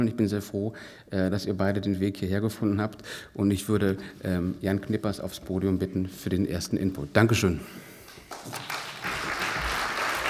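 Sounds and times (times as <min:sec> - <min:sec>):
speech: 0:00.0 - 0:08.8
audience clapping: 0:08.0 - 0:10.2.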